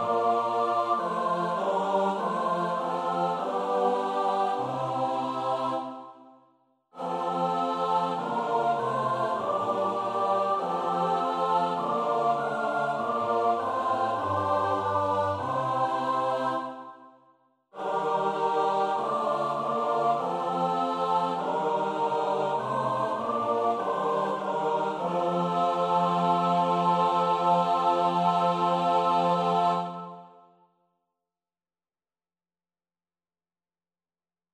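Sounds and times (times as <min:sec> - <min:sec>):
SATB choir singing a psalm: 0:00.0 - 0:30.6.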